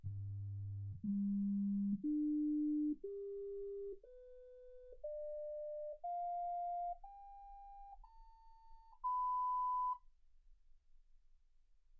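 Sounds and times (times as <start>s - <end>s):
sine tones: 0.4s - 10.0s.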